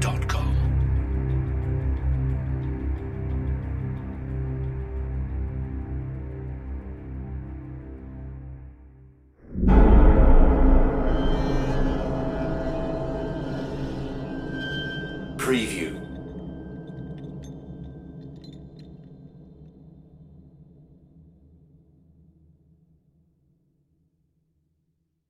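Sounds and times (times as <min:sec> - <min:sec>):
big Hollywood dramatic orchestral score: 0:00.0 - 0:05.3, 0:09.5 - 0:17.0.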